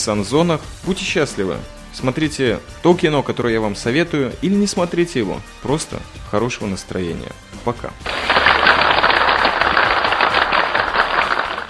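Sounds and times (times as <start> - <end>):
speech: 0.0 - 8.2
applause: 8.1 - 11.6.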